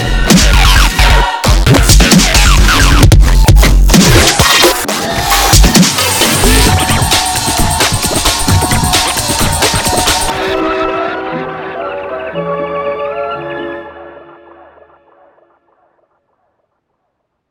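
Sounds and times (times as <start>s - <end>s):
big beat music: 0.0s - 10.9s.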